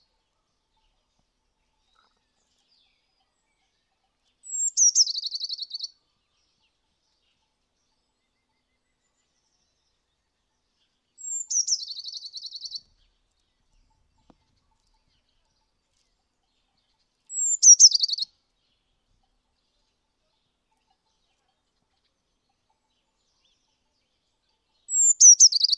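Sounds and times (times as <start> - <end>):
bird call with thin whistle and buzzy descending trill: 4.5 - 5.9, 11.2 - 12.8, 17.3 - 18.3, 24.9 - 25.7.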